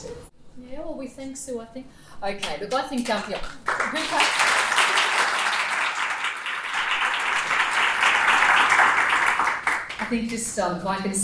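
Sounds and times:
speech: 0:01.0 - 0:04.5, 0:10.0 - 0:11.2
crowd applauding: 0:03.6 - 0:10.1.

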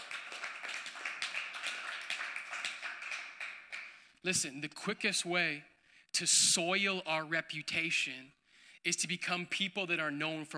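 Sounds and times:
audience clapping hands: 0:00.0 - 0:04.4
speech: 0:04.2 - 0:10.5.

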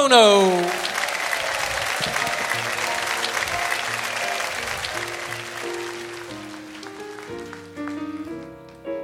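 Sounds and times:
band playing sustained instrumental chords: 0:00.0 - 0:08.3
crowd applauding: 0:00.0 - 0:08.9
speech: 0:00.1 - 0:00.9.

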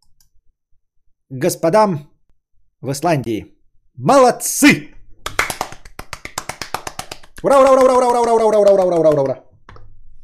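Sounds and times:
speech: 0:01.3 - 0:02.1, 0:02.8 - 0:05.0, 0:07.4 - 0:09.4
hands clapping: 0:05.2 - 0:09.8.

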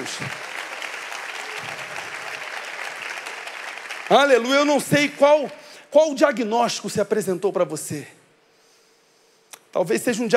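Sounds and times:
speech: 0:00.0 - 0:00.4, 0:04.1 - 0:08.2, 0:09.7 - 0:10.3
audience applauding: 0:00.0 - 0:05.5.

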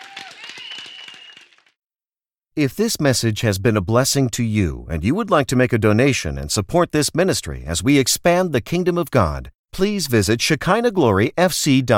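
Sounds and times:
audience hand clapping: 0:00.0 - 0:01.8
speech: 0:02.6 - 0:11.9.

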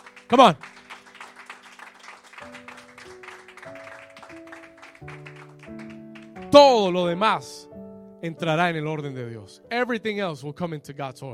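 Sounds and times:
audience applause: 0:00.0 - 0:06.4
speech: 0:00.3 - 0:00.8, 0:06.5 - 0:11.3.

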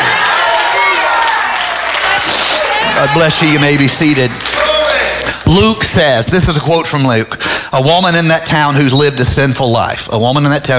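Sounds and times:
audience applauding: 0:00.0 - 0:05.8
speech: 0:03.0 - 0:04.5, 0:05.5 - 0:10.7.

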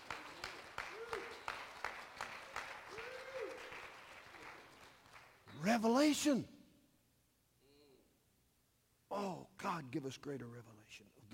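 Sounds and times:
audience clapping hands in praise: 0:00.0 - 0:05.7
speech: 0:05.7 - 0:06.6, 0:09.9 - 0:11.3.

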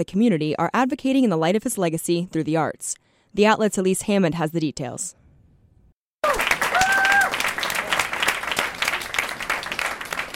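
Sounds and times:
speech: 0:00.0 - 0:05.2
audience clapping: 0:06.2 - 0:10.3.

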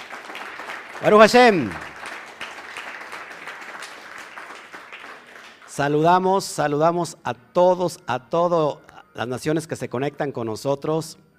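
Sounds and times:
audience applause: 0:00.0 - 0:05.8
speech: 0:01.0 - 0:01.8, 0:05.8 - 0:11.3.

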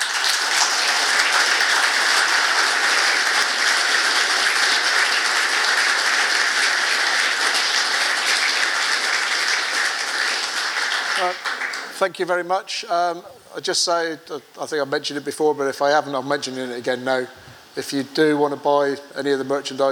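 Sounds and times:
audience applause: 0:00.0 - 0:12.2
speech: 0:12.0 - 0:19.8.

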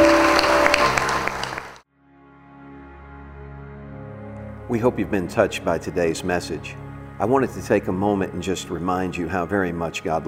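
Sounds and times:
audience hand clapping: 0:00.0 - 0:01.8
speech: 0:04.7 - 0:10.2.

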